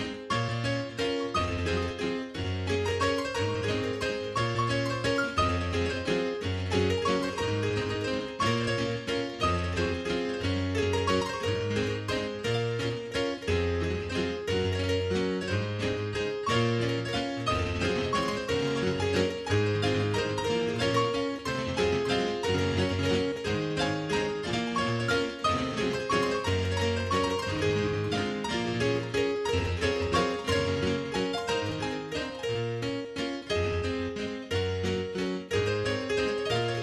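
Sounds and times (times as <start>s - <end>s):
relaxing piano music: 0.0s - 36.8s.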